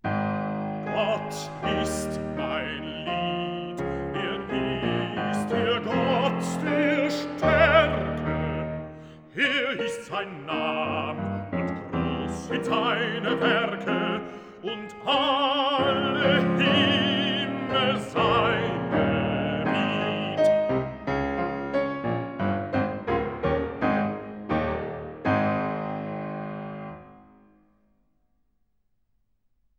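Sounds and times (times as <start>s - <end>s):
piano: 0.0s - 28.0s
person singing: 0.8s - 20.9s.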